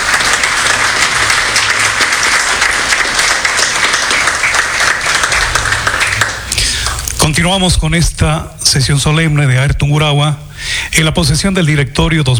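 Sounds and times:
large crowd applauding: 0.0s - 7.3s
speech: 7.3s - 12.3s.

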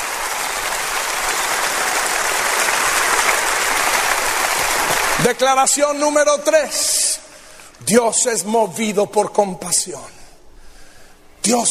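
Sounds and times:
large crowd clapping: 0.0s - 5.8s
speech: 5.2s - 7.1s, 7.8s - 10.2s, 11.4s - 11.6s.

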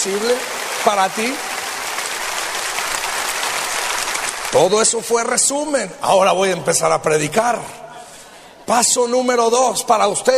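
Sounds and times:
speech: 0.0s - 1.5s, 4.5s - 7.9s, 8.7s - 10.3s
applause from a church congregation giving thanks: 0.0s - 5.4s.

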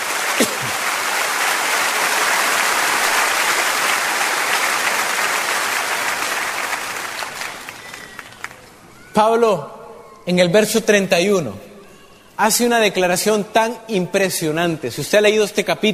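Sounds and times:
audience applause: 0.0s - 8.8s
speech: 9.2s - 11.7s, 12.4s - 15.9s.

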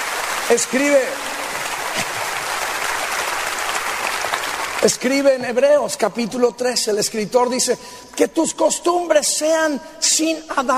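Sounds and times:
audience applauding: 0.0s - 5.4s
speech: 0.5s - 1.4s, 4.8s - 10.7s.

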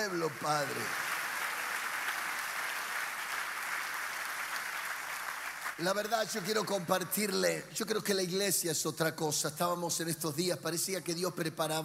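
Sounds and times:
speech: 0.0s - 1.1s, 5.8s - 11.8s
audience applause: 0.0s - 6.8s.

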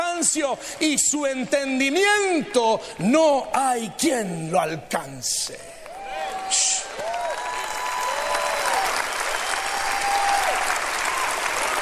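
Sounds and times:
speech: 0.3s - 5.8s
audience applauding: 5.7s - 11.8s.

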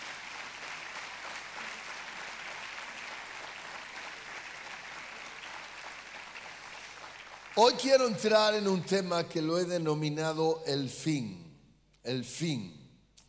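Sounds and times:
audience applauding: 0.0s - 8.1s
speech: 7.6s - 11.4s, 12.0s - 12.8s.

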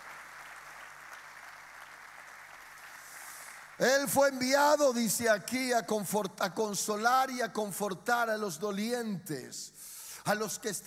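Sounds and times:
audience applause: 0.0s - 3.8s
speech: 3.8s - 10.8s.

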